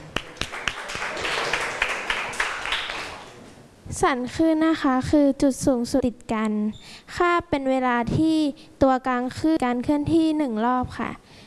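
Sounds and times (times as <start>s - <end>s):
classroom applause: 0.0s - 3.4s
speech: 4.0s - 11.4s.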